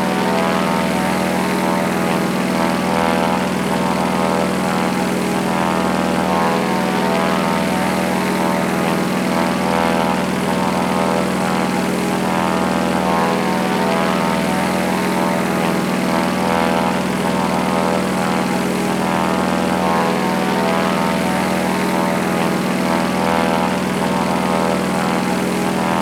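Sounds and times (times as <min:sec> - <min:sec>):
plane propeller idling: 0:00.0 - 0:26.0.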